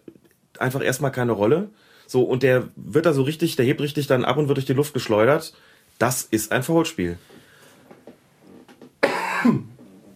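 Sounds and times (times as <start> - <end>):
speech: 0.6 - 7.4, 9.4 - 9.7
sneeze or cough: 9.0 - 9.8.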